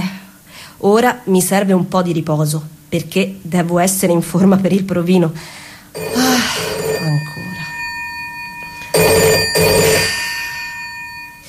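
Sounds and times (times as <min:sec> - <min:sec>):
speech: 0:00.8 - 0:06.2
bright buzzing metallic bell ringing: 0:06.0 - 0:11.4.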